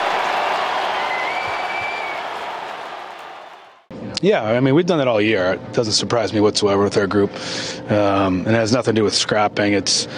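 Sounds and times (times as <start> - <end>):
hockey arena crowd applauding: 0.0 - 3.9
speech: 4.2 - 10.1.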